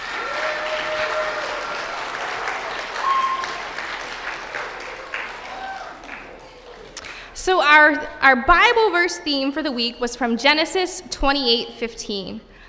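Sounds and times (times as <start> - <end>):
audience applause: 0.0 - 7.3
speech: 7.4 - 12.5.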